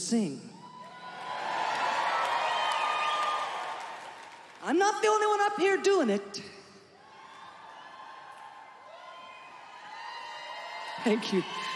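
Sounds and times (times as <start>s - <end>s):
speech: 0.1s - 0.5s, 4.7s - 6.6s, 11.0s - 11.7s
audience yelling and whooping: 0.5s - 4.3s, 7.0s - 11.7s.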